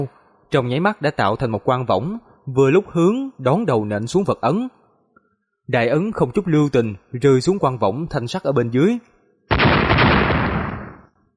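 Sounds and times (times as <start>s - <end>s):
speech: 0.0s - 4.8s, 5.7s - 10.3s
explosion bursts: 9.5s - 11.1s.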